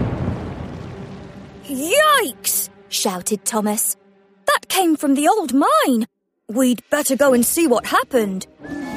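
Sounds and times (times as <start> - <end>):
distant explosion: 0.0 - 1.4
speech: 1.7 - 4.0, 4.7 - 8.8.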